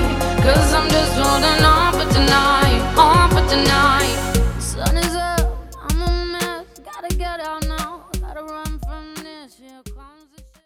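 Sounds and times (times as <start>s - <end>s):
Yamaha Genos2 keyboard synthesizer: 0.0s - 9.2s.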